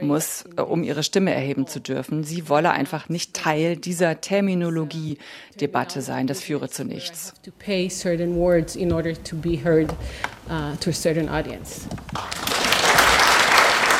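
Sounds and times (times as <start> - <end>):
speech: 0.1 - 12.5
audience applause: 12.2 - 13.9.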